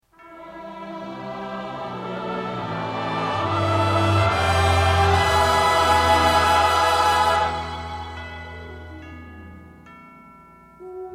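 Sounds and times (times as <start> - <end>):
prayer response band and vocal track: 0.4 - 8.9.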